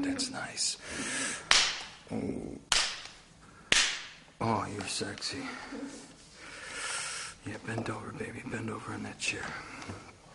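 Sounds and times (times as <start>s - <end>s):
speech: 0.0s - 2.8s, 4.4s - 6.1s, 7.4s - 10.1s
hand slap on buttocks: 1.5s - 2.0s, 2.7s - 4.2s.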